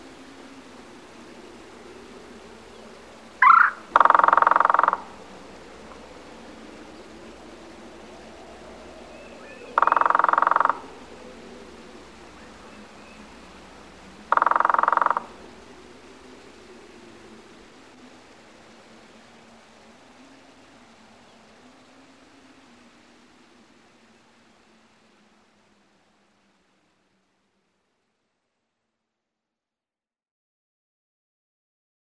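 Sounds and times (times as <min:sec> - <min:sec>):
woodpecker: 0:03.4 - 0:05.2, 0:09.4 - 0:10.9, 0:14.3 - 0:15.4.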